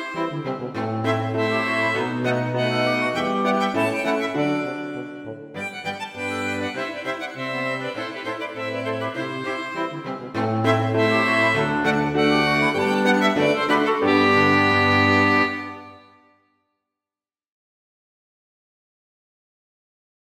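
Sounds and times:
violin and small ensemble: 0.0s - 16.2s.

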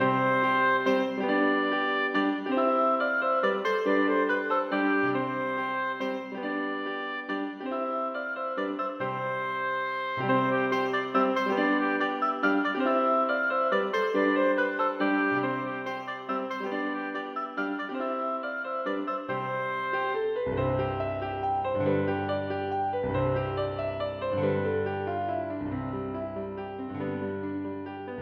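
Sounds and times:
oboe and piano minuet: 0.0s - 28.2s.

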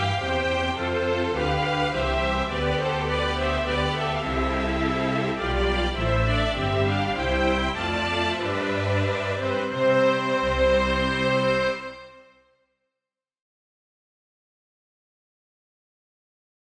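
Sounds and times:
string quintet playing a minuet: 0.0s - 12.3s.

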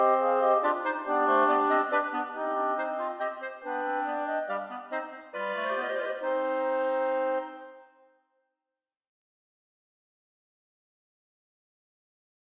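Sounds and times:
minuet for four clarinets, a practice piece: 0.0s - 7.8s.

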